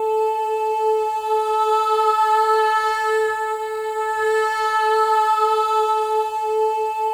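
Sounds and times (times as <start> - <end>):
choir of voices: 0.0 - 7.1.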